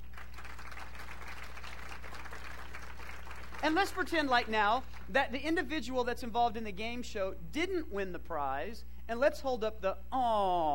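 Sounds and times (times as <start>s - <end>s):
studio audience applause: 0.0s - 4.0s
low constant hum: 0.0s - 10.7s
speech: 3.6s - 10.7s.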